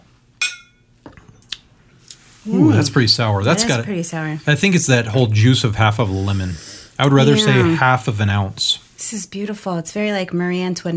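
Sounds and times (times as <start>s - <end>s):
glasses clinking in a toast: 0.4s - 0.9s
speech: 2.4s - 10.9s.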